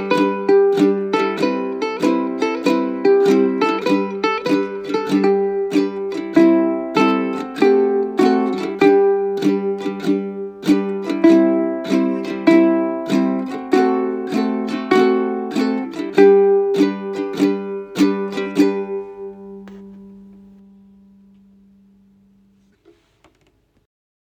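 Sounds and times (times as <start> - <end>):
ukulele playing: 0.0 - 23.1.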